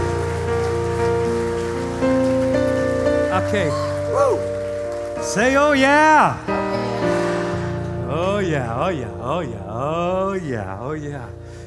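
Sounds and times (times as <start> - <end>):
audience clapping hands in praise: 0.0 - 8.9
speech: 3.5 - 4.5, 5.2 - 6.6, 8.2 - 11.6.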